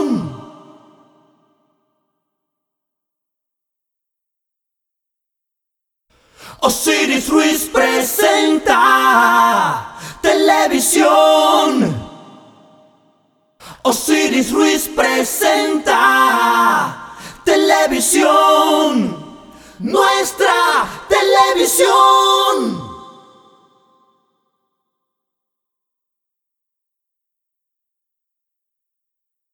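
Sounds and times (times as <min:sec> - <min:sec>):
voices singing an a cappella jingle: 0:06.7 - 0:12.6, 0:13.9 - 0:23.4.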